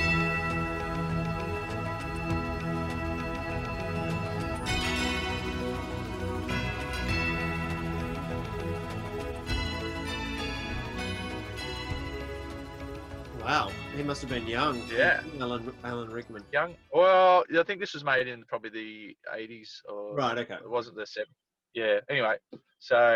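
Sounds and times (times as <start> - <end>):
tubular bells ringing: 0.0 - 16.6
speech: 13.5 - 23.1.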